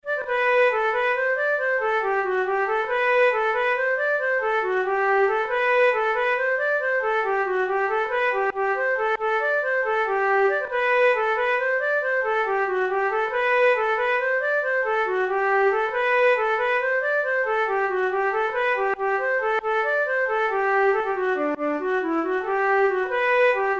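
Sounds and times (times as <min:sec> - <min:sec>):
flute playing a jig: 0:00.0 - 0:23.7.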